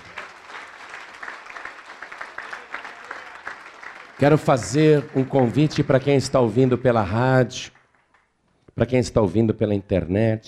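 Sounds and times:
audience applauding: 0:00.0 - 0:08.4
speech: 0:04.2 - 0:07.8, 0:08.8 - 0:10.4.

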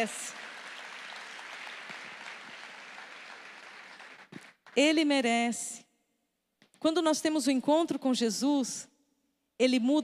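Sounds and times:
speech: 0:00.0 - 0:00.4, 0:04.8 - 0:05.8, 0:06.8 - 0:08.9, 0:09.6 - 0:10.0
audience applause: 0:00.0 - 0:04.8.

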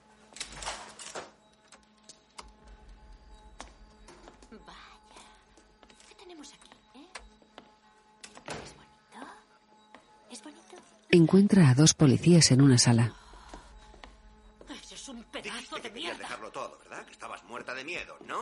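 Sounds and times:
apartment door opening thunks and clicks: 0:00.3 - 0:02.9, 0:08.2 - 0:08.9
speech: 0:11.1 - 0:13.2.

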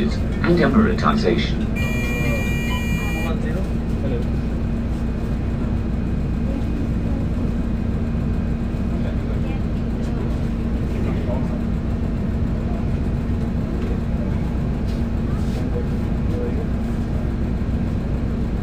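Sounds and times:
bus engine drone: 0:00.0 - 0:18.6
short bright electronic tone: 0:01.8 - 0:03.4.

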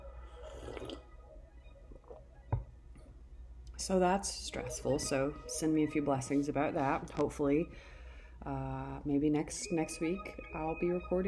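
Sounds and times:
small liquid sounds: 0:00.3 - 0:02.5
person sipping coffee: 0:00.4 - 0:01.1
speech: 0:03.8 - 0:11.2.

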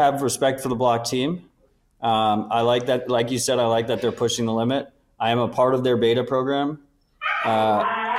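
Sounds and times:
speech: 0:00.0 - 0:06.8, 0:07.4 - 0:08.0
dogs whining: 0:07.2 - 0:07.7.

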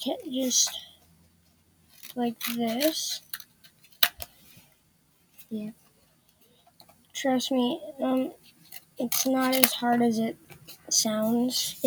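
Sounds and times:
speech: 0:00.0 - 0:00.9, 0:02.1 - 0:03.4, 0:05.5 - 0:05.8, 0:07.2 - 0:08.4, 0:09.0 - 0:11.8
person's voice: 0:00.0 - 0:01.0, 0:02.2 - 0:03.3, 0:05.5 - 0:05.8, 0:07.2 - 0:08.4, 0:09.0 - 0:11.8
scissors cutting a strip of cardboard: 0:01.9 - 0:03.4.

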